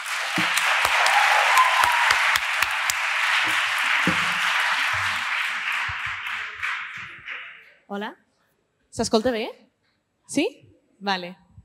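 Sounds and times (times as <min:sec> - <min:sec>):
audience applause: 0:00.0 - 0:07.6
speech: 0:07.9 - 0:08.2, 0:09.0 - 0:09.6, 0:10.3 - 0:11.4.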